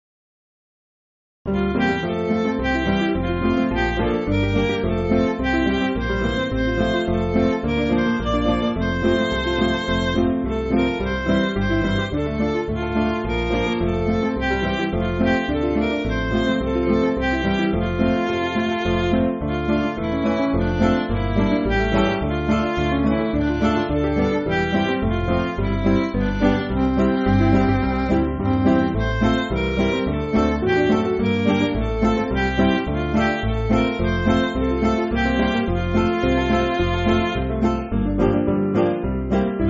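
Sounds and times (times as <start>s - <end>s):
MIDI church backing music: 1.5s - 39.6s.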